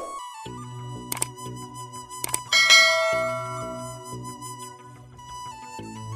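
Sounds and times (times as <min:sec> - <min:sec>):
Odia romantic love background music ringtone: 0:02.3 - 0:04.4.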